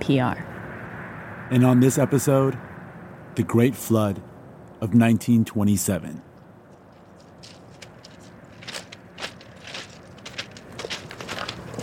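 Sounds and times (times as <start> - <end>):
speech: 0.0 - 0.5, 1.5 - 2.7, 3.4 - 6.3
footsteps walking toward the Mississippi River levee: 6.7 - 11.8.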